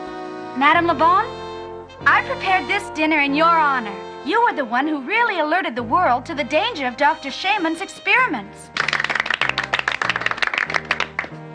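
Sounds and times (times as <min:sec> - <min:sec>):
speech: 0:00.6 - 0:01.4, 0:02.0 - 0:08.8
applause: 0:08.8 - 0:11.5.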